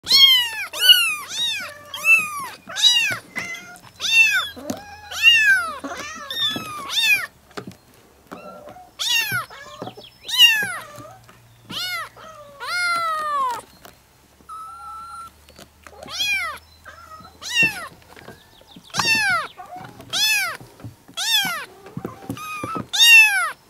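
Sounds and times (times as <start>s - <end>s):
kittens meowing: 0.1s - 7.3s, 8.4s - 11.1s, 11.7s - 13.7s, 14.5s - 15.3s, 16.0s - 17.9s, 19.0s - 20.6s, 21.2s - 23.6s.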